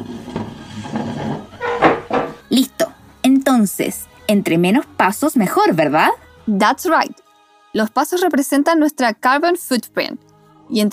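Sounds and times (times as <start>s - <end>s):
chair being moved: 0.0s - 2.5s
speech: 3.6s - 10.9s.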